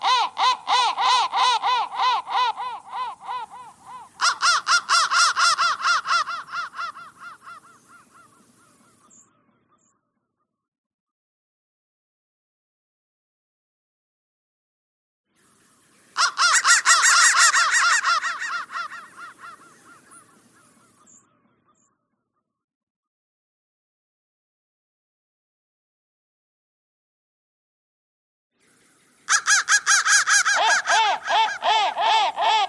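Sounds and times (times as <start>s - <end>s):
crow thread noise: 0.0s - 10.0s, 15.4s - 22.0s, 28.6s - 32.6s.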